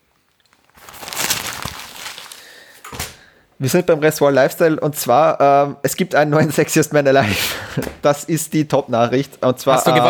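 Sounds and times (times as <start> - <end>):
paper rustling: 0.5 - 3.2
speech: 3.6 - 10.0
laughter: 9.7 - 10.0.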